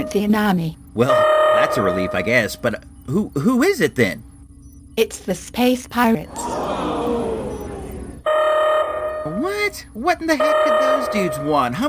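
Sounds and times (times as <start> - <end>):
speech: 0.0 - 4.3, 5.0 - 6.8, 9.3 - 11.8
electronic alarm tone: 1.1 - 2.5, 7.5 - 9.4, 10.4 - 11.7
laughter: 6.2 - 8.2.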